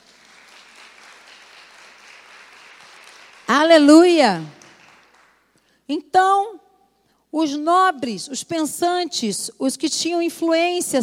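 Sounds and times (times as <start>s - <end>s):
audience applause: 0.0s - 3.7s, 4.5s - 5.5s
speech: 3.5s - 4.6s, 5.9s - 6.6s, 7.3s - 11.0s.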